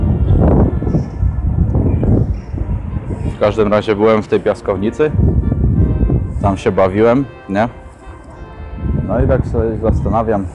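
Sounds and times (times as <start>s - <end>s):
small train passing: 0.0s - 10.5s
speech: 3.4s - 5.4s, 6.4s - 7.8s, 9.1s - 10.5s.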